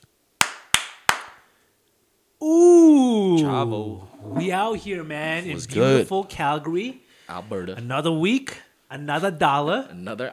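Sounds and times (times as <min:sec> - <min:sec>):
hand clapping: 0:00.4 - 0:01.5
speech: 0:02.4 - 0:02.7, 0:03.5 - 0:10.3.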